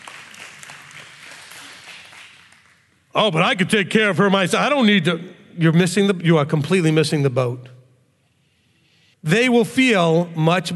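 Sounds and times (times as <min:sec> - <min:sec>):
audience applause: 0:00.0 - 0:02.8
speech: 0:03.1 - 0:07.8, 0:09.2 - 0:10.7.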